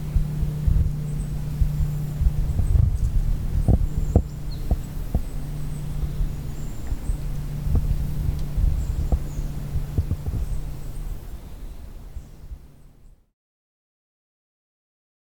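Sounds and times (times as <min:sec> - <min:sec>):
airplane high in the sky: 0:00.0 - 0:13.3.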